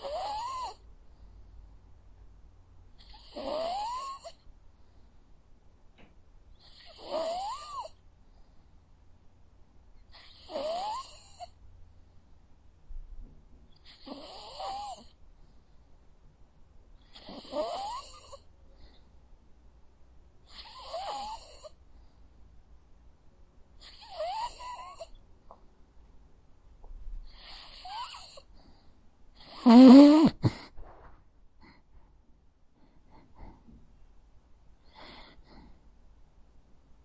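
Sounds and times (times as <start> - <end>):
dog snoring: 0.0 - 0.8, 3.0 - 4.4, 6.6 - 8.0, 10.1 - 11.6, 13.8 - 15.2, 17.0 - 18.4, 20.5 - 21.8, 23.8 - 25.2, 27.3 - 28.5, 29.4 - 30.7.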